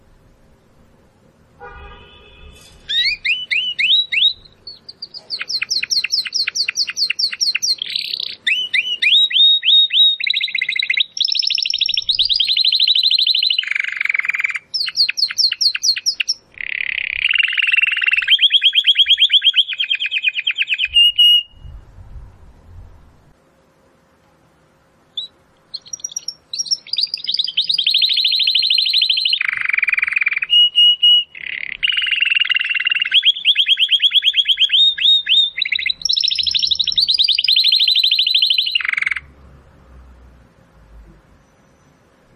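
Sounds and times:
domestic canary singing: 0:02.8 - 0:21.8, 0:25.2 - 0:39.3.

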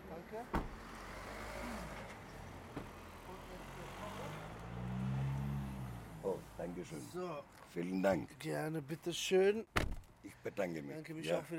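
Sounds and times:
cars driving past at an airport: 0:00.1 - 0:07.4
speech: 0:00.3 - 0:00.6, 0:06.6 - 0:11.5
thump: 0:00.5 - 0:00.8, 0:09.8 - 0:10.1.

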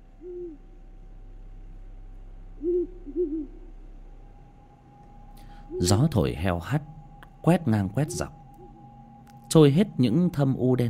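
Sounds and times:
owls hooting: 0:00.2 - 0:00.7, 0:02.6 - 0:03.7, 0:05.4 - 0:10.7
speech: 0:05.8 - 0:08.4, 0:09.5 - 0:10.8.

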